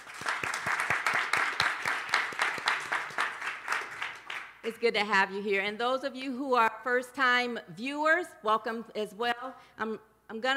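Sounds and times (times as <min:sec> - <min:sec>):
church congregation clapping to welcome visitors: 0:00.0 - 0:04.7
speech: 0:04.6 - 0:10.5.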